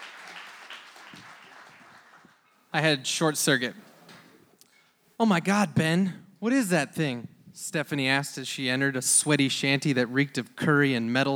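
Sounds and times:
crowd clapping hands: 0:00.0 - 0:02.6
speech: 0:02.7 - 0:03.9, 0:05.2 - 0:11.3.

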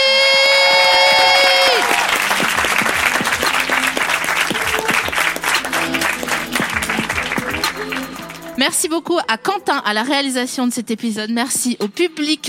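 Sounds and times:
live audience applause: 0:00.2 - 0:08.6
speech: 0:08.6 - 0:12.4.

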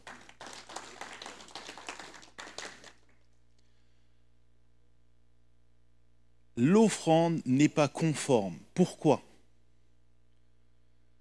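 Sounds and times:
crowd applauding: 0:00.0 - 0:03.2
speech: 0:06.6 - 0:09.3.

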